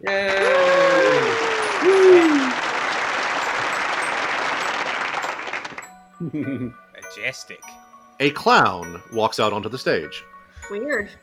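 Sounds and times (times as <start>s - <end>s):
speech: 0.0s - 0.4s, 6.3s - 11.2s
audience applause welcoming a performer: 0.1s - 5.9s.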